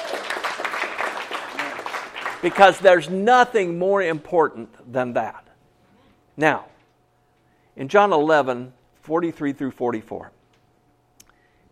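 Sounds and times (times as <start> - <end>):
audience clapping: 0.0 - 3.1
speech: 2.4 - 5.4, 6.4 - 6.7, 7.8 - 10.4.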